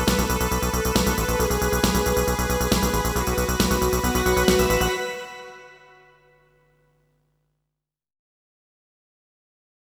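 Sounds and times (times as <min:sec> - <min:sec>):
synthesizer: 0:00.0 - 0:06.7.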